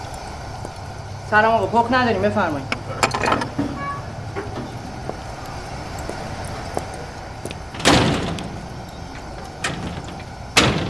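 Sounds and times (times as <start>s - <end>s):
speech: 1.3s - 3.5s
door banging shut: 2.7s - 4.9s, 7.7s - 10.8s.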